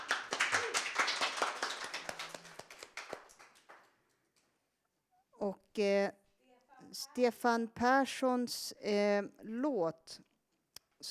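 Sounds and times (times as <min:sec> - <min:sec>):
audience applause: 0:00.0 - 0:03.9
speech: 0:05.4 - 0:06.2, 0:06.9 - 0:10.3.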